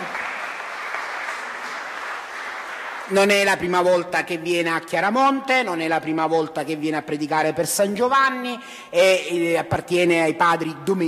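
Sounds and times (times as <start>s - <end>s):
church congregation applause welcoming a Dominican priest in Chiaramonte: 0.0s - 3.5s
speech: 3.1s - 11.0s.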